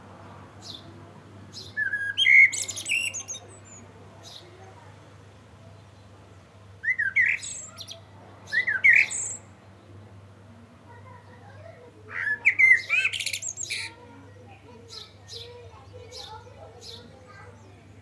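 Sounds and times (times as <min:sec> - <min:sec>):
Common blackbird singing: 0:01.6 - 0:04.4, 0:06.8 - 0:09.5, 0:12.1 - 0:14.0, 0:14.8 - 0:17.8.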